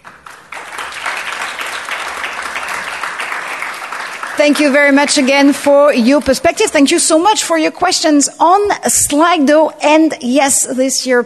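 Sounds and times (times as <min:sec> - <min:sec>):
audience applause for panelists: 0:00.0 - 0:05.8
speech: 0:04.4 - 0:11.2.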